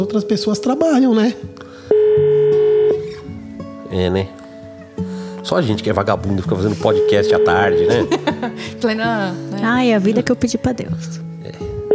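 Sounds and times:
speech: 0.0 - 2.4, 3.9 - 4.4, 5.4 - 11.6
telephone ringback tone while waiting for an answer: 1.9 - 3.1, 6.8 - 8.0
laughter: 7.7 - 8.8.

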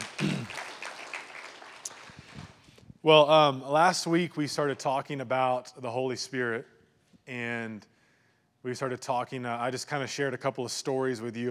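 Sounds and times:
audience applause: 0.0 - 2.7
speech: 3.0 - 6.7, 7.3 - 7.9, 8.6 - 11.4.

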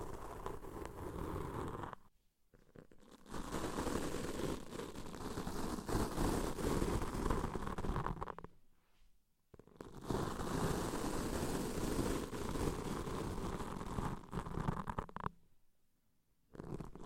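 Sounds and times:
deep ear cleaning rubbing and crackling: 0.0 - 2.0, 2.6 - 8.5, 9.9 - 15.2.

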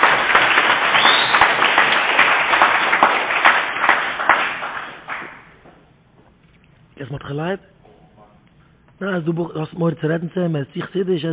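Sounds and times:
clapping: 0.0 - 5.8
speech: 7.3 - 7.8, 9.0 - 11.3.

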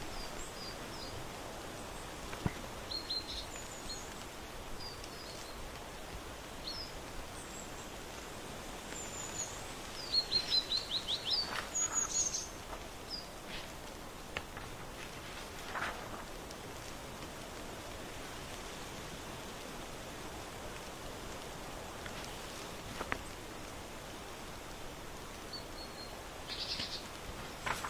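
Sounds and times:
birdsong: 0.0 - 13.8, 25.4 - 27.8
crunchy autumn leaves: 0.0 - 27.8
flipping books: 14.5 - 16.3, 27.6 - 27.8.

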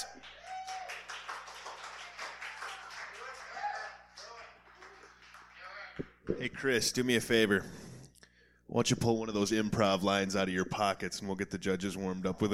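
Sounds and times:
audience applause: 0.0 - 6.0
speech: 6.3 - 7.9, 8.7 - 12.5.

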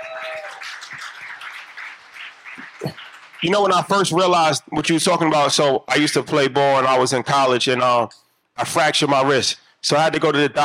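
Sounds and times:
audience applause: 0.0 - 4.6
speech: 3.4 - 10.6.

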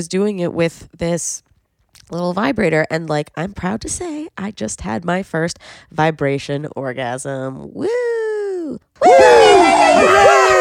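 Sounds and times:
speech: 0.0 - 10.3
woman whooping and shrieking in celebration: 7.9 - 10.5.

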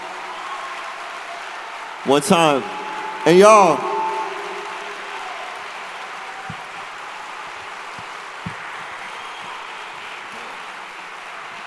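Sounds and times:
audience applause: 0.0 - 11.6
speech: 2.0 - 3.9.

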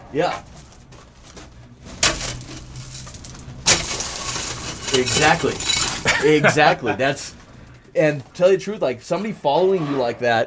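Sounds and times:
low steady noise: 0.0 - 9.6
speech: 0.1 - 0.5, 4.9 - 10.4
pickaxe dragged across rocks: 2.0 - 6.4
laughter: 6.0 - 7.3.

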